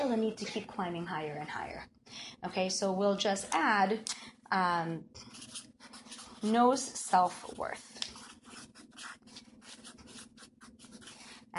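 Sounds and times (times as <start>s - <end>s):
speech: 0.0s - 7.9s
handwriting with scratchy rubbing strokes: 5.2s - 6.8s, 8.1s - 11.5s.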